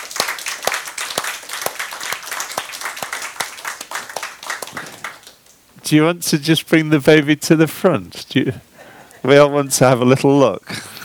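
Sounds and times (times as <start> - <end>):
audience applause welcoming a couple and their baby: 0.0 - 5.4
speech: 5.9 - 10.9.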